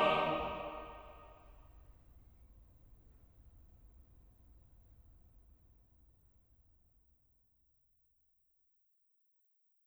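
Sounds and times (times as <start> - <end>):
choir singing: 0.0 - 1.2.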